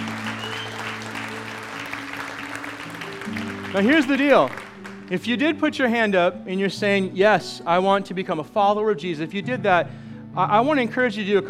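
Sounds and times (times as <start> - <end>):
audience applause: 0.0 - 5.2
speech: 3.3 - 11.4.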